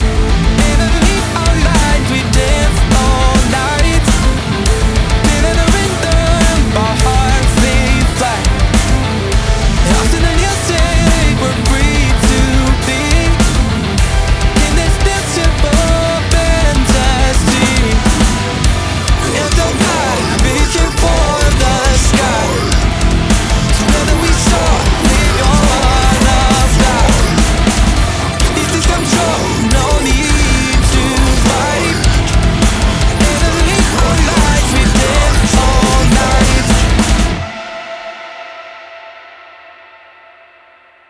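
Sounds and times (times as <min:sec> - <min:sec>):
metal music in a minor key: 0:00.0 - 0:40.8.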